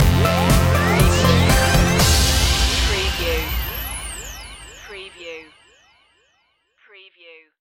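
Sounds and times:
musical stinger: 0:00.0 - 0:05.7.

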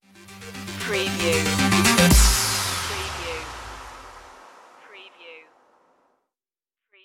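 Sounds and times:
electro circuit stinger: 0:00.1 - 0:04.9.

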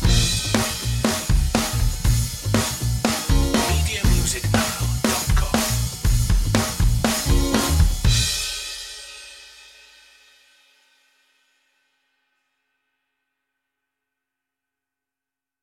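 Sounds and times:
tonewheel organ underscore: 0:00.0 - 0:01.8, 0:03.2 - 0:04.9, 0:07.2 - 0:08.0
funky guitar underscore: 0:00.0 - 0:08.4.

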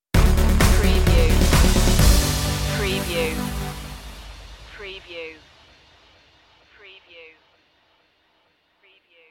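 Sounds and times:
music stinger: 0:00.2 - 0:06.4.

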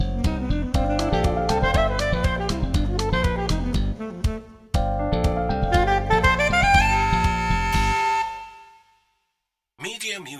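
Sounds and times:
slap bass: 0:00.0 - 0:04.0, 0:04.8 - 0:08.1.

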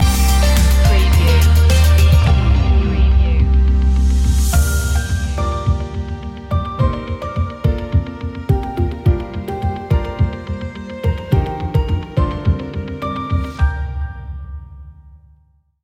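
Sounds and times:
instrumental music: 0:00.0 - 0:15.0.

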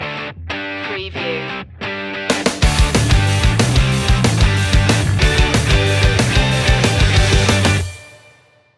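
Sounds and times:
American summer music stinger: 0:02.3 - 0:08.7.

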